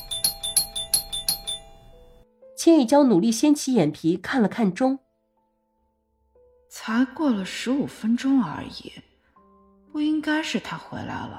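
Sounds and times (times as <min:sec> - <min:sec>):
doorbell ringing: 0:00.0 - 0:02.2
speech: 0:02.6 - 0:05.0, 0:06.8 - 0:09.1, 0:10.0 - 0:11.3.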